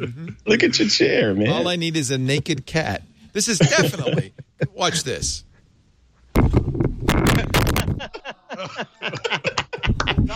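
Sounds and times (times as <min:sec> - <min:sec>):
speech: 0:00.0 - 0:05.5, 0:08.0 - 0:10.3
laughter: 0:03.4 - 0:05.2, 0:07.2 - 0:10.3
microphone being knocked over with a thump: 0:06.3 - 0:08.1.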